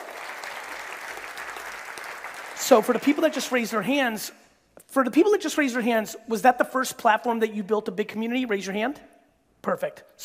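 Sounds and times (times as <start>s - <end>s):
live audience applause at a talk: 0.0s - 3.7s
speech: 2.6s - 4.4s, 5.0s - 10.2s.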